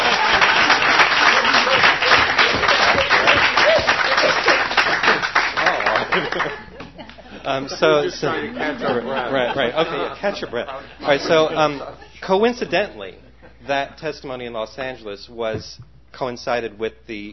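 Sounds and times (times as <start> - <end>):
audience applause: 0.0 - 7.0
laughter: 0.0 - 14.0
speech: 7.5 - 17.3.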